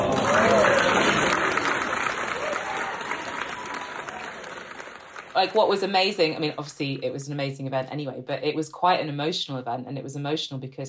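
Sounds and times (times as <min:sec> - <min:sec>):
audience round of applause: 0:00.0 - 0:06.7
speech: 0:05.4 - 0:10.8.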